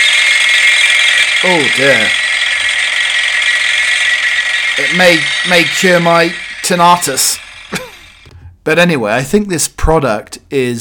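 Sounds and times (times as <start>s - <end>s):
vibrating massager buzzing: 0.0s - 8.4s
speech: 1.4s - 2.2s, 4.8s - 7.8s, 8.7s - 10.7s.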